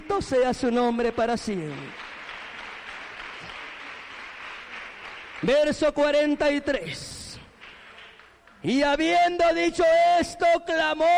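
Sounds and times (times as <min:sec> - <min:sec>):
audience clapping: 0:00.0 - 0:09.1
speech: 0:00.2 - 0:02.0, 0:05.4 - 0:07.1, 0:08.6 - 0:11.1.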